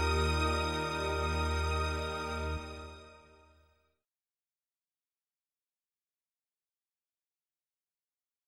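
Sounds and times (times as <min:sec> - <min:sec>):
easy listening and classical music: 0:00.0 - 0:03.1.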